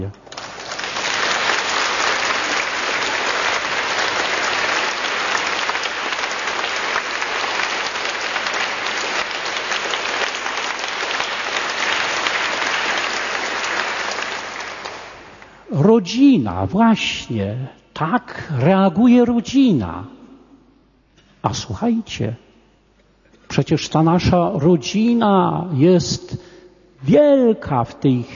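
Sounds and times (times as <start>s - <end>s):
speech: 0.0s - 0.2s, 15.9s - 20.2s, 21.4s - 22.4s, 23.6s - 28.3s
audience applause: 0.2s - 15.4s.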